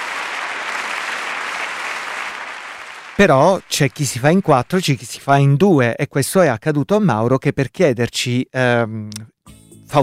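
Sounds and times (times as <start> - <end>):
concert audience applause at Arena di Verona: 0.0 - 5.1
speech: 3.2 - 10.0.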